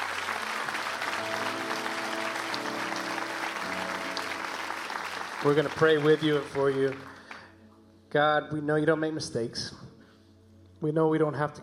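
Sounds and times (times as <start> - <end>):
audience applause: 0.0 - 7.4
speech: 5.4 - 7.2, 8.1 - 9.8, 10.8 - 11.6.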